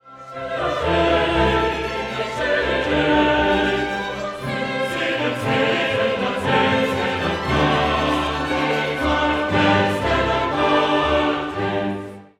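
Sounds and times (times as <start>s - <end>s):
choral mass movement: 0.1s - 12.3s.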